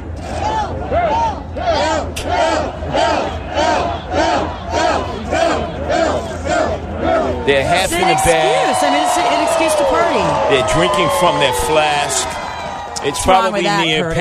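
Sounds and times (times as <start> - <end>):
rowdy drunk crowd cheering and chanting at night: 0.3 - 14.1
speech: 7.5 - 12.4, 13.0 - 14.1.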